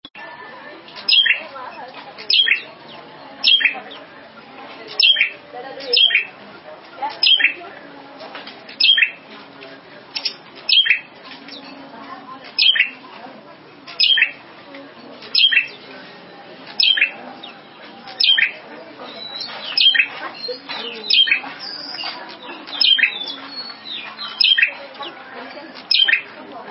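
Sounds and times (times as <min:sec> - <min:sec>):
prinia song with trilling: 0:00.1 - 0:08.0, 0:08.7 - 0:09.3, 0:10.1 - 0:26.6.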